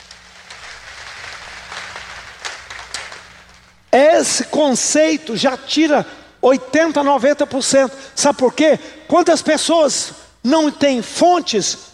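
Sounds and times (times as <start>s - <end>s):
audience applause: 0.0s - 3.6s
speech: 3.9s - 11.9s.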